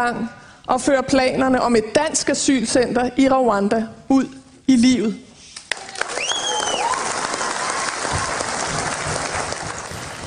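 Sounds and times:
speech: 0:00.0 - 0:05.3
audience applause after political speech: 0:05.7 - 0:10.2
faint whistles and cheers: 0:05.9 - 0:08.5.

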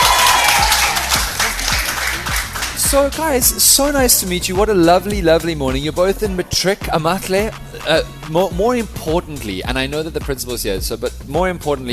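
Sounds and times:
audience applause: 0:00.0 - 0:03.0
speech: 0:02.9 - 0:11.9.

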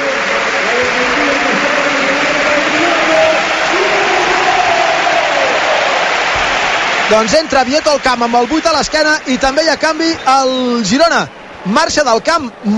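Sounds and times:
murmuring voices: 0:00.0 - 0:05.5
stadium crowd applauding a substitute: 0:00.0 - 0:12.7
speech: 0:07.1 - 0:12.7.

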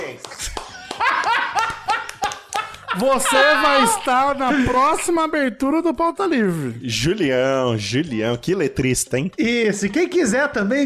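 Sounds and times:
hosts clapping: 0:00.0 - 0:05.2
voices cheering and laughing: 0:01.0 - 0:05.0
speech: 0:03.0 - 0:10.8.

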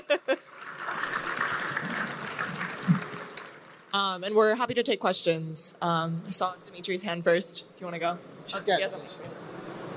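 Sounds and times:
audience applause: 0:00.4 - 0:04.0
speech: 0:03.9 - 0:09.4.

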